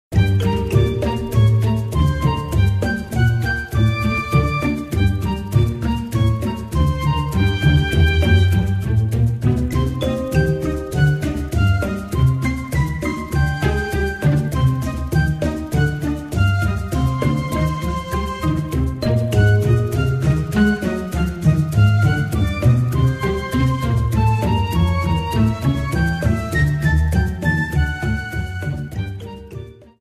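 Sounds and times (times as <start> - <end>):
hostile intrusion music: 0.1 - 29.4.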